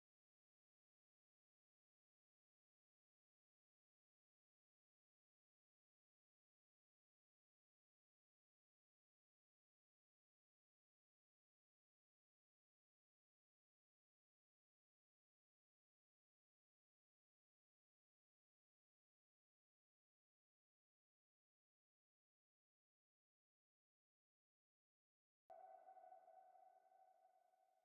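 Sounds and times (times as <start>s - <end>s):
atmosphere: 25.5s - 27.8s.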